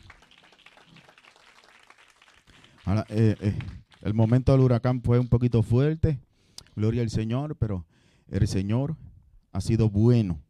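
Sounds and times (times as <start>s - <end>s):
audience applause: 0.0s - 4.7s
speech: 2.9s - 10.4s.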